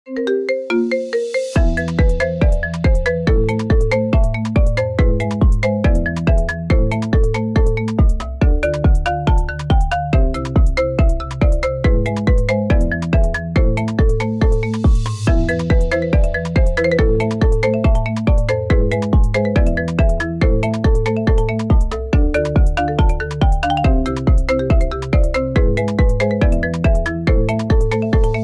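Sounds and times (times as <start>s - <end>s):
iPhone ringtone song: 0.1s - 28.4s.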